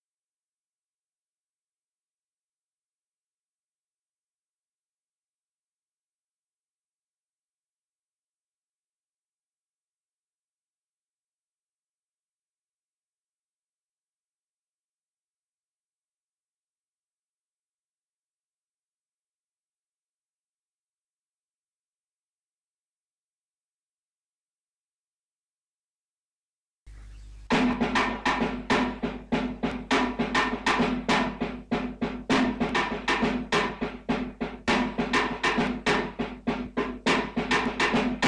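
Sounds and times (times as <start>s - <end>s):
drum: 27.4s - 38.2s.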